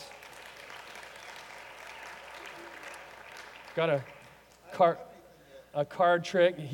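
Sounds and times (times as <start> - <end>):
audience applause: 0.0 - 4.4
speech: 3.8 - 5.1, 5.7 - 6.7.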